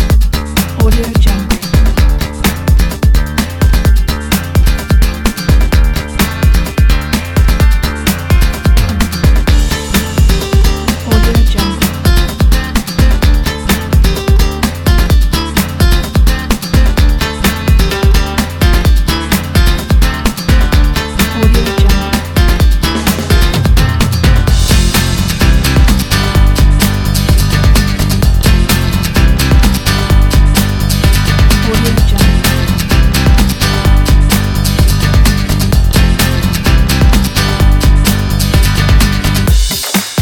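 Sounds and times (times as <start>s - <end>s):
acoustic breakbeat: 0.0s - 40.2s.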